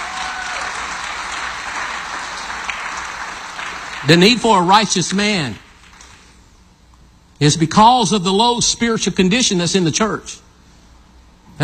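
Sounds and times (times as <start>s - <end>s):
audience hand clapping in praise: 0.0s - 6.3s
speech: 4.0s - 5.6s, 7.4s - 10.4s.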